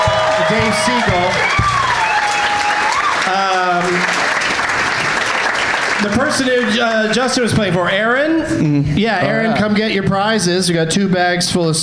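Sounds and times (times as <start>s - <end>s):
audience applause for three guests at a live comedy show: 0.0s - 7.5s
speech: 0.5s - 1.6s, 6.0s - 11.8s.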